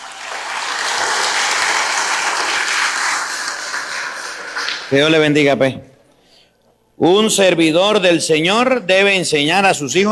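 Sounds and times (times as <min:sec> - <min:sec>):
applause: 0:00.0 - 0:05.4
speech: 0:04.9 - 0:05.9, 0:07.0 - 0:10.1.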